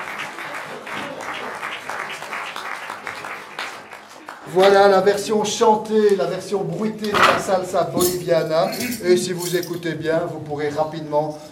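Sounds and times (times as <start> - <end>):
steady audience applause: 0.0 - 5.0
speech: 4.5 - 11.5.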